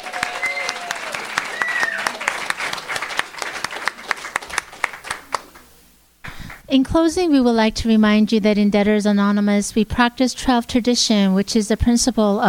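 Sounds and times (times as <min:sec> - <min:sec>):
crowd applauding: 0:00.0 - 0:05.7
speech: 0:06.7 - 0:12.4.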